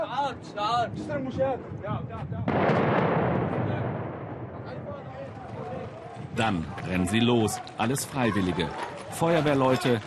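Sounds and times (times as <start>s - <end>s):
speech: 0.2s - 3.9s, 6.4s - 10.0s
barrel bomb dropped from Syrian army helicopter exploding: 2.4s - 4.9s.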